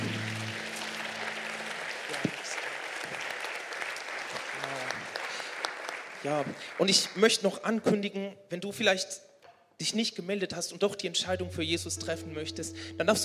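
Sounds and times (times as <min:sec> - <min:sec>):
audience applause: 0:00.0 - 0:07.2
speech: 0:06.2 - 0:13.2.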